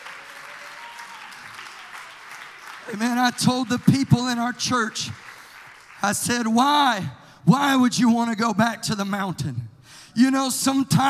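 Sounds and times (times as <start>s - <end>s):
audience clapping hands in praise: 0.0s - 6.7s
speech: 2.9s - 5.2s, 6.0s - 9.6s, 10.2s - 11.0s.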